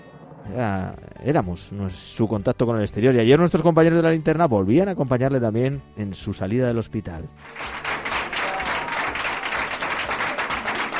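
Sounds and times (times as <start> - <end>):
speech: 0.5 - 7.9
applause: 7.4 - 10.9.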